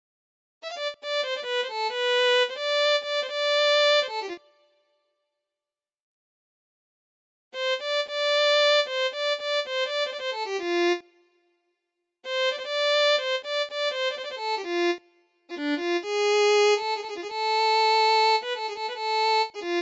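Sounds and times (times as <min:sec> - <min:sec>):
violin: 0:00.6 - 0:04.6, 0:07.6 - 0:11.1, 0:12.2 - 0:19.8.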